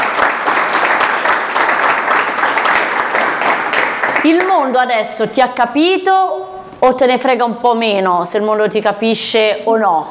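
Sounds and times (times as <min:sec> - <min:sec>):
applause: 0:00.0 - 0:04.6
speech: 0:04.2 - 0:10.1.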